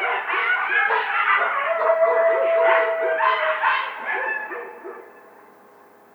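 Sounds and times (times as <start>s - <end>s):
coyote Canis latrans howling: 0.0s - 4.8s.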